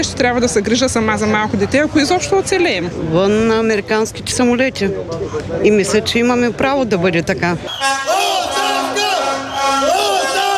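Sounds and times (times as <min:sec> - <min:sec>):
speech: 0:00.0 - 0:08.2
protest crowd shouting: 0:07.7 - 0:10.5.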